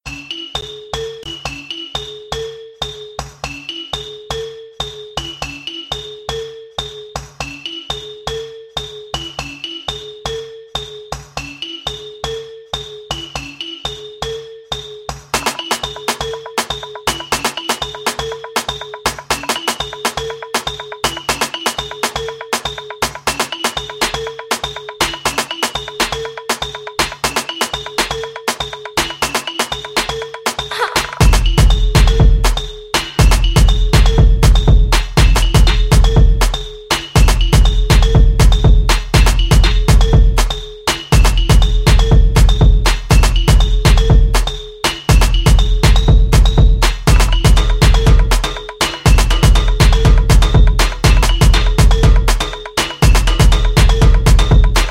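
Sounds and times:
marimba music: 0.1 - 54.9.

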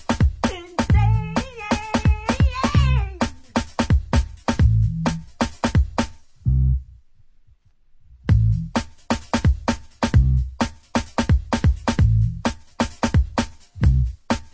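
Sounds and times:
bass music mix: 0.3 - 7.1, 8.1 - 8.9, 9.5 - 10.6, 11.6 - 12.5, 13.3 - 14.3.

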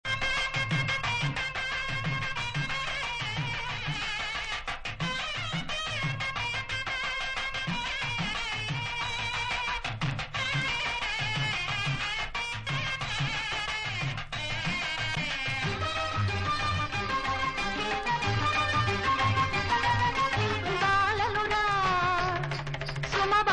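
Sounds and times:
sitar: 0.1 - 23.5.

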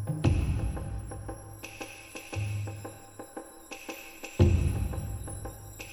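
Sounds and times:
battle drums: 0.1 - 1.6, 4.4 - 5.8.

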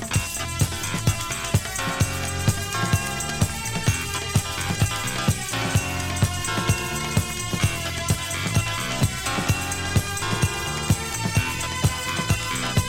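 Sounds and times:
instrumental rock music: 0.2 - 12.8.

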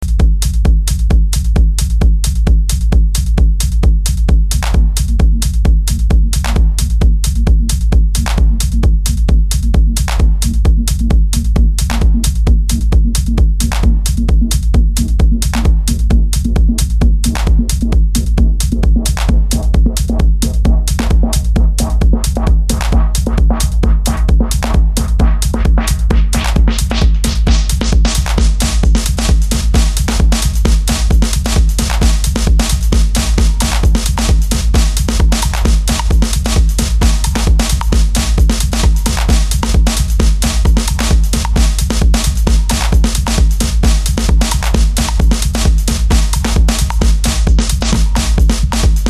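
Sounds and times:
drums: 0.0 - 49.0.

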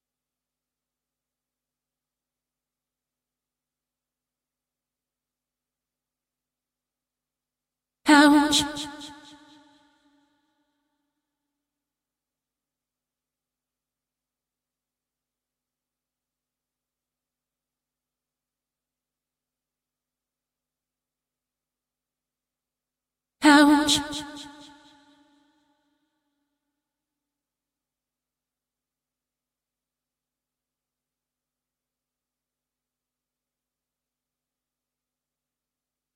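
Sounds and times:
a cappella singing: 8.1 - 10.1, 23.4 - 25.4.

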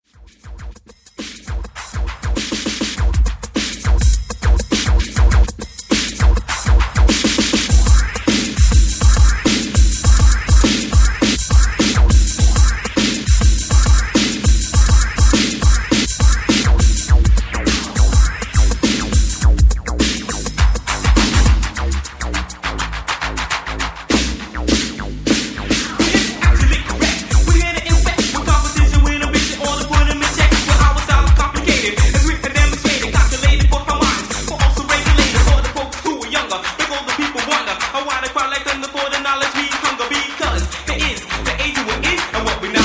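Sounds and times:
bassline: 0.0 - 42.8.

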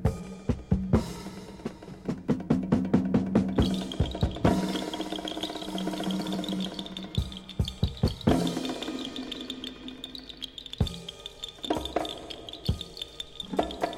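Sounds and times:
solo percussion: 0.0 - 13.9.

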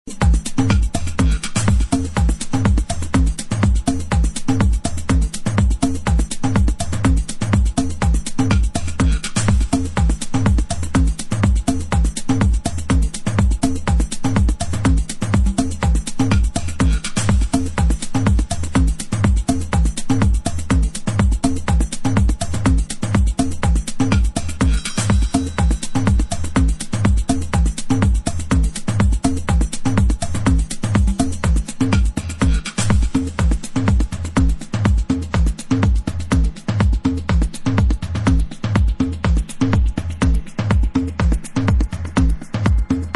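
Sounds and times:
dub drum beat: 0.1 - 43.1.

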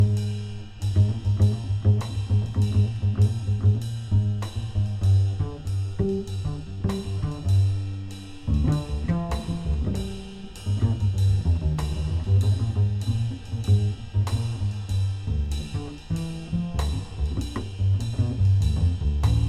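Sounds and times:
bass: 0.0 - 19.4.

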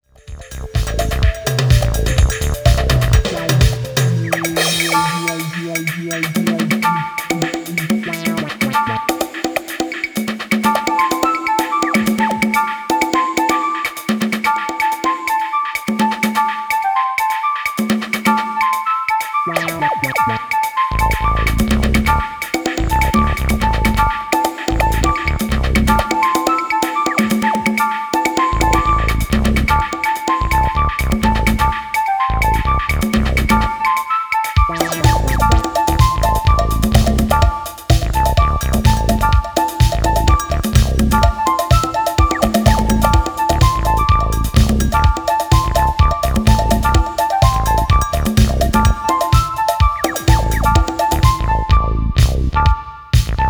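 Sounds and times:
flute music: 0.2 - 53.4.

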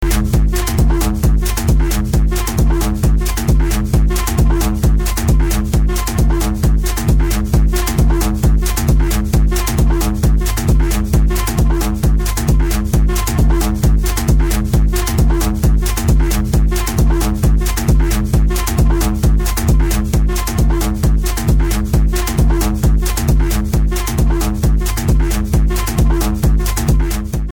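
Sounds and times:
locked groove on a record: 0.0 - 27.5.

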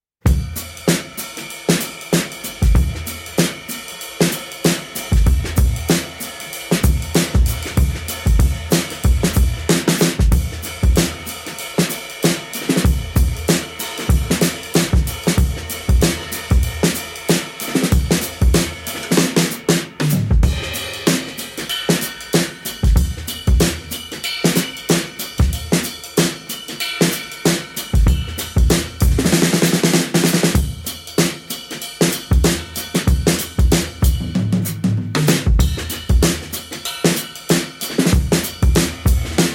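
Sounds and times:
drum break: 0.2 - 39.5.

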